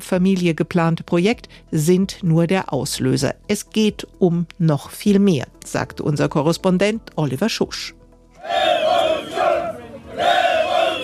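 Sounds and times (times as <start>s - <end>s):
speech: 0.0s - 8.9s
protest crowd chanting at demonstration: 8.4s - 11.0s.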